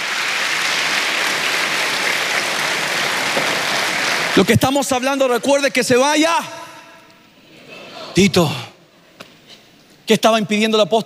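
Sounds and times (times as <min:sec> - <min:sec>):
crowd clapping: 0:00.0 - 0:04.7
speech: 0:04.4 - 0:06.6, 0:08.2 - 0:08.7, 0:10.1 - 0:11.0.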